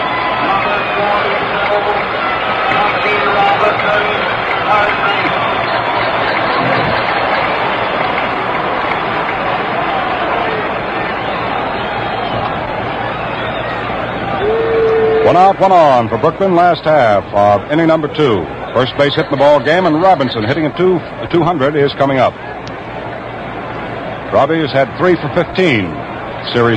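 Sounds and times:
stadium crowd applauding a batter: 0.0 - 15.5
speech: 15.3 - 22.5, 24.3 - 26.7.

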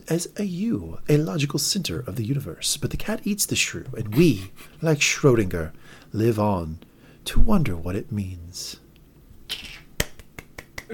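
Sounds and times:
speech: 0.1 - 8.8
soft polite golf clap: 10.0 - 10.9.

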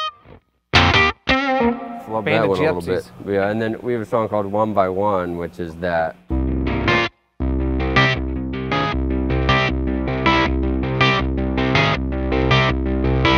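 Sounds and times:
electric guitar through effects pedal sounding like Wurlitzer keyboard: 0.0 - 2.9, 6.3 - 13.3
speech: 1.6 - 6.3.

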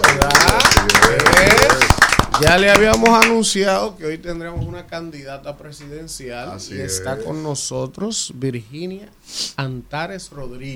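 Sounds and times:
studio applause welcoming a guest: 0.0 - 3.4
speech: 2.4 - 10.7.

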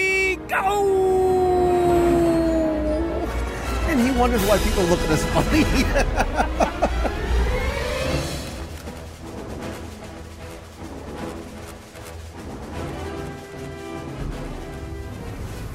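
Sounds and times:
speech: 0.5 - 1.0, 4.2 - 6.6
jetpack turbines firing up: 2.0 - 15.7
laughter: 4.4 - 7.5.

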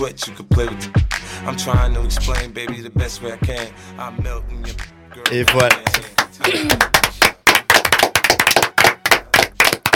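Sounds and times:
speech: 0.0 - 6.9
audience clapping: 5.2 - 9.9.

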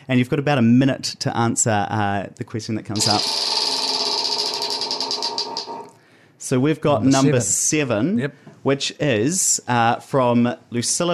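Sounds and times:
speech: 0.1 - 3.7, 6.5 - 11.1
prize wheel spinning with pointer clicking: 3.0 - 6.0.

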